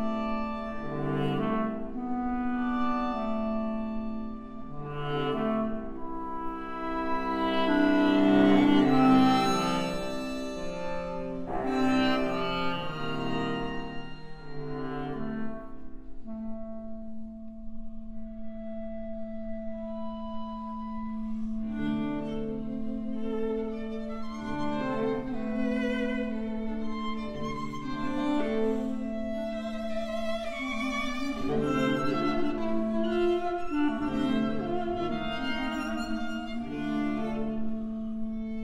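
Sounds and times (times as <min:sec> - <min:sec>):
clarinet quartet playing: 0:00.2 - 0:15.6, 0:18.2 - 0:38.5.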